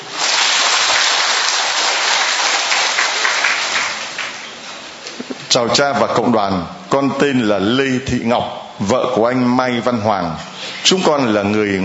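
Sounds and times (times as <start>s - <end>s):
church congregation applauding in thanksgiving after a testimony: 0.0s - 4.7s
speech: 5.6s - 11.8s.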